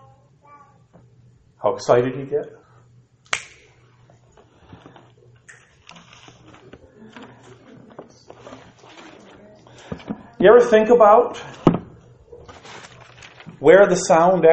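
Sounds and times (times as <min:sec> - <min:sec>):
speech: 0:01.6 - 0:02.6, 0:10.4 - 0:11.5, 0:13.6 - 0:14.5
finger snap: 0:03.2 - 0:03.7.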